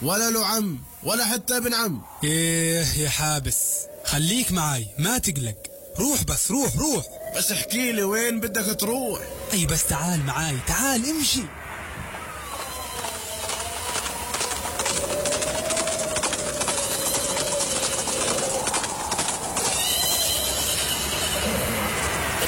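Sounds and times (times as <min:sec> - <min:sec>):
speech: 0:00.0 - 0:11.6
constant noise: 0:00.0 - 0:22.4
two horses approaching, hooves clip-clopping: 0:12.3 - 0:21.6.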